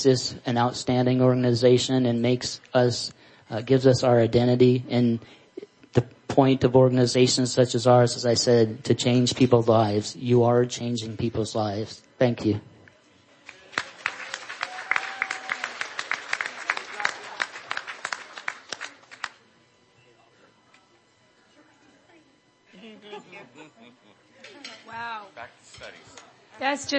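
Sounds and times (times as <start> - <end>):
speech: 0.0 - 5.4, 6.0 - 12.7
audience applause: 13.5 - 19.4
laughter: 22.7 - 24.8.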